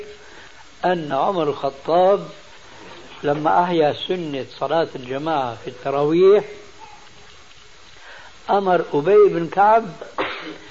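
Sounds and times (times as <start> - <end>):
speech: 0.8 - 2.4, 3.2 - 6.6, 8.5 - 10.6
person sneezing: 10.1 - 10.6.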